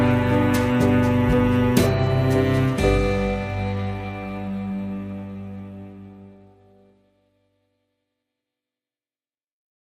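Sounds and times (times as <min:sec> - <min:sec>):
music mix: 0:00.0 - 0:07.5.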